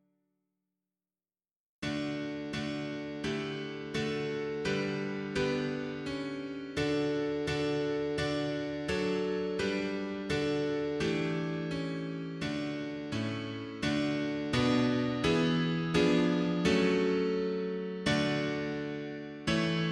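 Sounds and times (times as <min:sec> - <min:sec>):
mono piano: 0:01.8 - 0:19.8.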